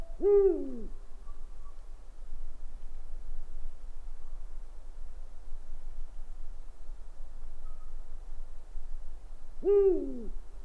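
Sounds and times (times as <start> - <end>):
owl hooting: 0.2 - 1.0, 9.6 - 10.4.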